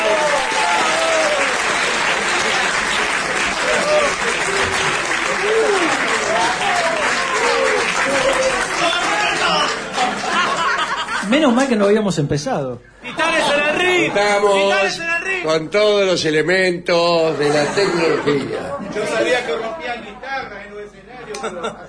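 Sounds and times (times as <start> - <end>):
audience applause: 0.0 - 11.1
laughter: 7.8 - 11.4, 17.2 - 19.7, 21.2 - 21.8
speech: 11.4 - 20.2.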